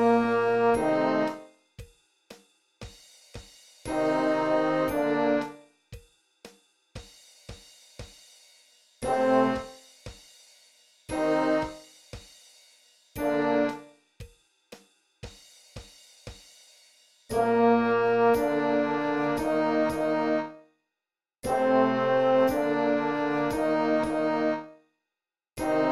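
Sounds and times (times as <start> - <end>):
concert duet: 0.0 - 1.4, 3.9 - 5.6, 9.0 - 9.7, 11.1 - 11.8, 13.2 - 13.8, 17.3 - 20.6, 21.4 - 24.7, 25.6 - 25.8.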